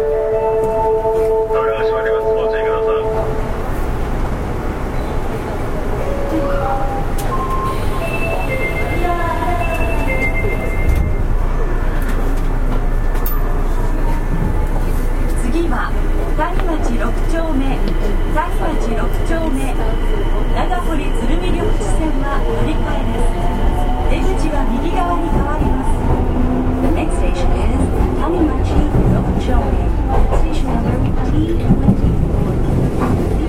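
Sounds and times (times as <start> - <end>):
Osaka city subway 30000 series train running on the Tanimachi Line: 0.0 - 33.4
murmuring voices on an Osaka subway train: 4.8 - 33.4
clear tone: 6.0 - 11.3.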